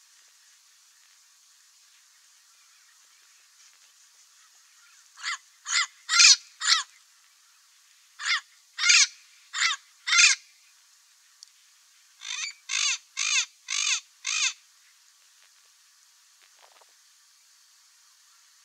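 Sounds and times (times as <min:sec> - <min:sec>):
Amazon parrot squawking: 0:05.2 - 0:06.8, 0:08.2 - 0:10.4, 0:12.2 - 0:14.6.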